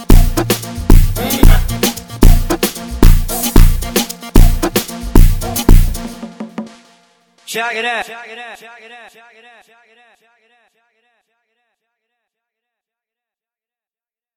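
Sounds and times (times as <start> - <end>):
gym song beat: 0.0 - 7.0.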